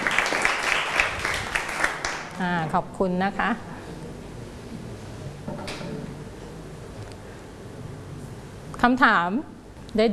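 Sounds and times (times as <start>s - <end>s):
applause: 0.0s - 2.4s
speech: 2.4s - 3.8s, 8.8s - 10.1s.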